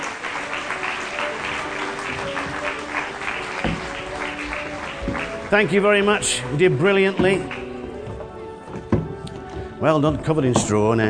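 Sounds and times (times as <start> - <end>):
audience applause: 0.0 - 6.5
speech: 5.5 - 7.6, 9.8 - 11.0.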